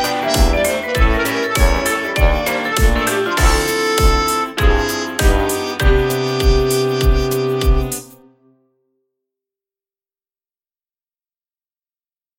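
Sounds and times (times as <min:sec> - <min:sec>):
electro swing music: 0:00.0 - 0:08.3.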